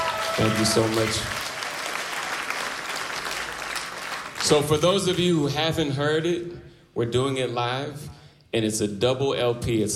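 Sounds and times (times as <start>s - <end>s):
audience clapping: 0.0s - 5.2s
speech: 0.4s - 1.4s, 4.5s - 9.9s.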